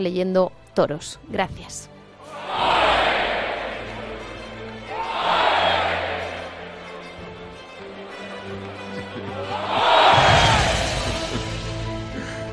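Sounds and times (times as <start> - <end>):
speech: 0.0 - 2.7
applause: 2.1 - 11.2
laughter: 8.5 - 12.5.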